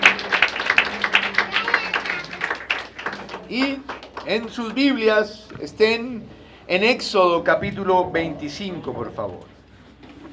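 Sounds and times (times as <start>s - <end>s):
audience applauding: 0.0s - 5.1s
speech: 3.5s - 9.5s.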